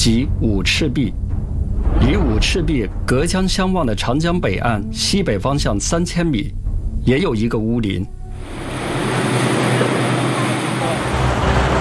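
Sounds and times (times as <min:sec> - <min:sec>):
speech: 0:00.0 - 0:01.2, 0:02.0 - 0:08.7
car ferry crossing the Yangtze River: 0:08.4 - 0:11.7.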